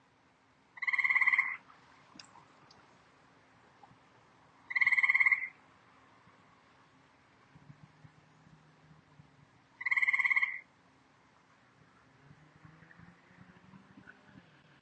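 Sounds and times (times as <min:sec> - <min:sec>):
grey tree frog in the ornamental gardens of an experimental farm in Ottawa Canada: 0:00.8 - 0:02.7, 0:04.6 - 0:05.6, 0:09.8 - 0:10.7.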